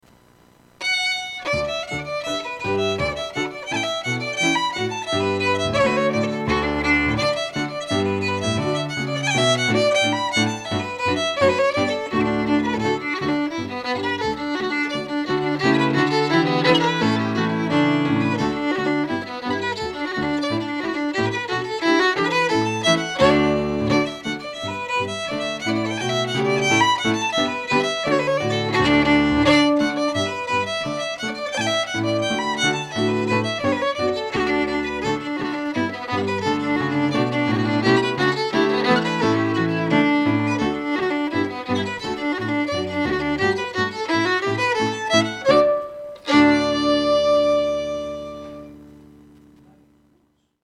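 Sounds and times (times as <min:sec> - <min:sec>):
Scottish fiddle playing a reel: 0:00.8 - 0:49.6.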